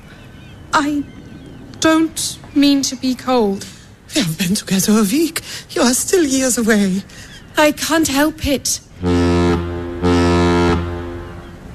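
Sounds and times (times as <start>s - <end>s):
speech: 0.8s - 1.2s, 1.8s - 9.1s
deep ship horn blasts signalling a boat's departure: 9.0s - 11.7s.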